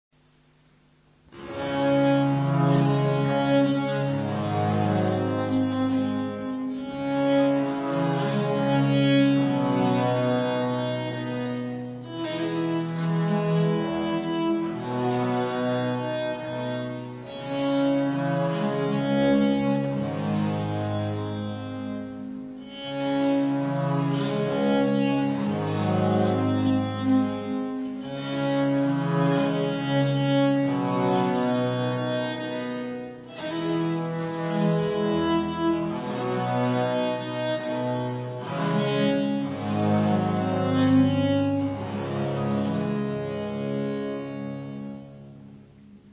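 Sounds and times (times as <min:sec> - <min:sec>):
folia music: 0:01.3 - 0:46.1.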